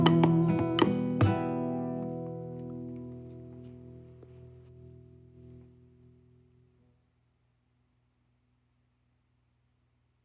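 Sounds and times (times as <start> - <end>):
Wolof music: 0.0 - 6.9.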